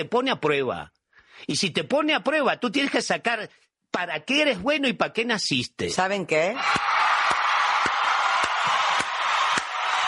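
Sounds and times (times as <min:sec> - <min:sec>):
speech: 0:00.0 - 0:07.4
audience applause: 0:06.6 - 0:10.0.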